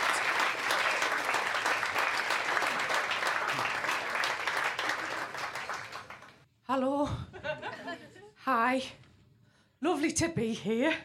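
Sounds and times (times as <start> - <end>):
crowd applauding: 0.0 - 6.4
speech: 6.8 - 9.0, 9.8 - 11.0.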